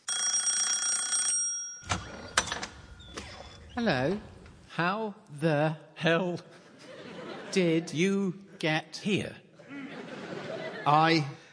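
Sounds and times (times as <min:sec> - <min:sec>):
doorbell ringing: 0:00.0 - 0:02.3
speech: 0:03.8 - 0:06.6, 0:07.5 - 0:09.4, 0:10.8 - 0:11.4
laughter: 0:06.4 - 0:11.4.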